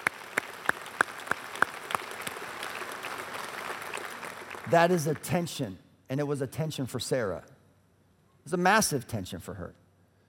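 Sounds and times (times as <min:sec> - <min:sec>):
audience applause: 0:00.0 - 0:05.3
speech: 0:04.7 - 0:07.5, 0:08.5 - 0:09.8.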